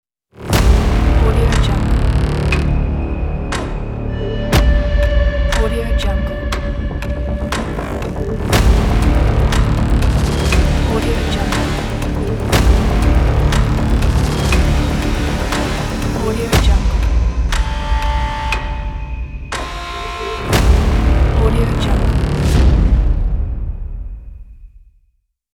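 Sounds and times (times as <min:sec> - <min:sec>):
countdown trailer ident: 0:00.4 - 0:24.4.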